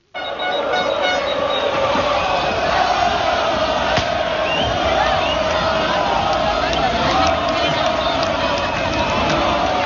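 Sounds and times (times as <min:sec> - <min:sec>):
horn toots: 0:00.0 - 0:03.3
60,000 Lens football fans roaring welcoming their team back: 0:00.0 - 0:09.8.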